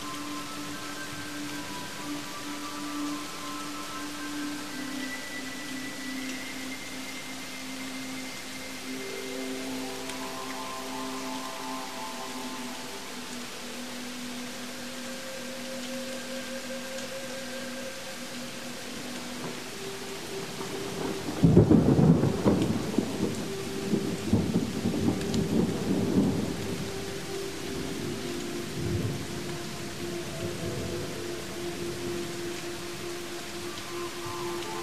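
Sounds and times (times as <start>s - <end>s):
rain: 0.0s - 34.8s
relaxation music: 0.0s - 34.8s
thunder: 20.6s - 23.4s.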